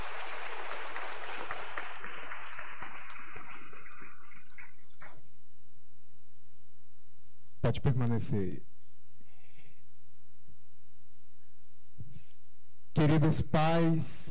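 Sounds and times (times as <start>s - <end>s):
crowd audience applauding: 0.0s - 4.9s
speech: 7.7s - 8.7s, 13.0s - 14.2s.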